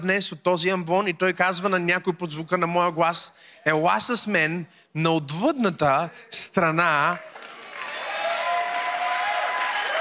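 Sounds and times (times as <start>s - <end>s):
speech: 0.0s - 7.3s
audience applauding: 7.1s - 10.0s.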